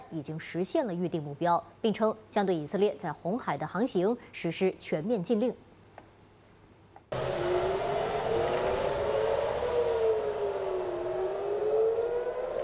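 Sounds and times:
speech: 0:00.1 - 0:05.7
air raid warning siren in Tel Aviv: 0:07.1 - 0:12.6.

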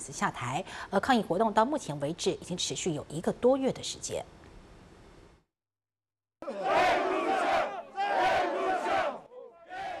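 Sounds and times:
speech: 0:00.0 - 0:04.4
union members, farmers and Indigenous groups chanting slogans at a protest march in La Paz, Bolivia: 0:06.4 - 0:09.9.

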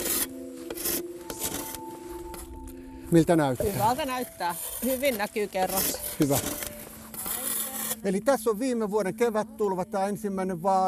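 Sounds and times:
saw blade scraping a surface clean: 0:00.0 - 0:01.8, 0:03.6 - 0:08.5
speech: 0:03.1 - 0:06.6, 0:08.0 - 0:10.8.

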